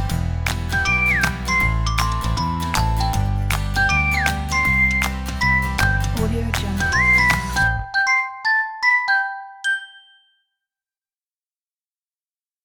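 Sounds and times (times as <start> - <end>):
person whistling happily: 0.7 - 3.2, 3.8 - 9.2.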